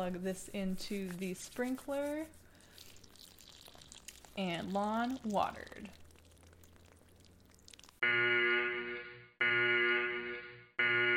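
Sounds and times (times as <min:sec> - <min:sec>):
speech: 0:00.0 - 0:02.4, 0:04.4 - 0:06.0
siren alarm blaring: 0:08.0 - 0:11.1.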